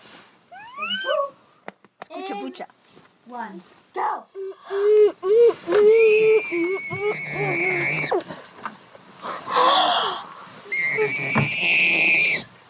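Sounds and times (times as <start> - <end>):
speech: 2.2 - 8.4, 11.0 - 12.5
muffled screaming into a pillow: 4.4 - 8.3, 9.3 - 12.6.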